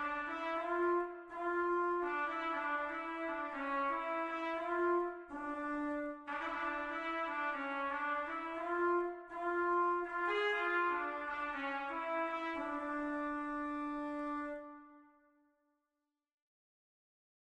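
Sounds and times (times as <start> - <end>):
trumpet: 0.0 - 15.2.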